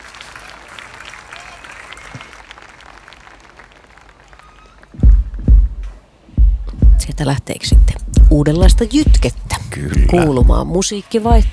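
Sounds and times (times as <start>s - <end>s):
outdoor audience applauding: 0.0s - 5.5s
speech: 7.2s - 11.5s.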